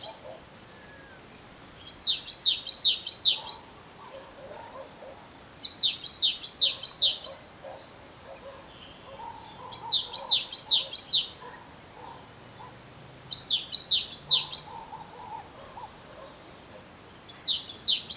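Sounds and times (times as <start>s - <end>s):
great tit singing: 1.8s - 3.8s, 5.6s - 7.6s, 8.4s - 12.7s, 13.3s - 15.1s, 17.2s - 18.1s.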